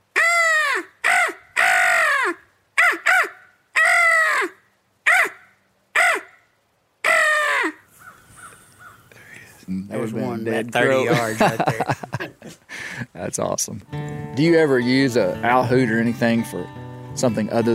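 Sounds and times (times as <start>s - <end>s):
human voice imitating crow calls: 0.0s - 6.4s, 7.0s - 9.0s
speech: 10.0s - 17.7s
laughter: 10.8s - 13.0s.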